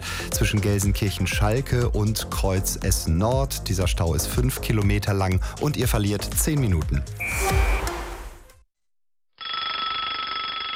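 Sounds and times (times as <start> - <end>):
speech: 0.3 - 7.9
alarm clock ringing: 9.4 - 10.7.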